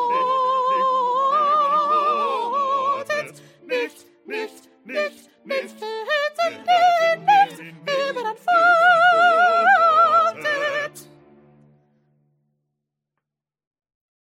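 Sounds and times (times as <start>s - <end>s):
small soprano choir singing: 0.0s - 11.2s.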